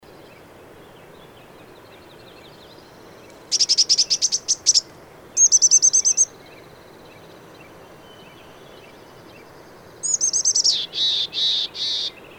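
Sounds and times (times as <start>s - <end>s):
bird whistling: 3.5s - 4.8s, 5.4s - 6.3s, 10.0s - 12.2s.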